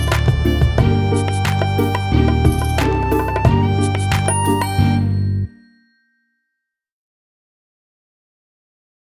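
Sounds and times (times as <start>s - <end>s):
instrumental music: 0.0s - 6.1s.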